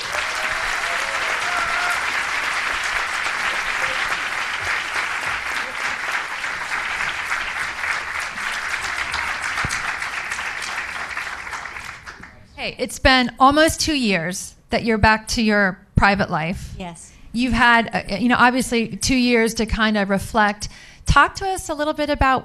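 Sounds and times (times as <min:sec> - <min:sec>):
audience applause welcoming Dr. Jill Biden onto a stage: 0:00.0 - 0:12.5
speech: 0:12.6 - 0:22.4.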